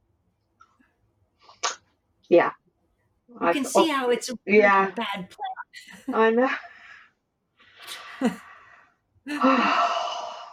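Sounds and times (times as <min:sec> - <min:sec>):
speech: 0:02.3 - 0:02.6, 0:03.3 - 0:06.7, 0:08.2 - 0:08.5, 0:09.3 - 0:09.9
deep breath during a breathing exercise: 0:06.6 - 0:10.5.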